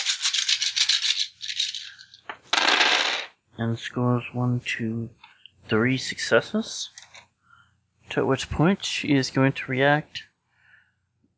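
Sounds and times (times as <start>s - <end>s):
dice being rolled: 0.0s - 3.4s
speech: 3.6s - 7.0s, 8.2s - 10.3s.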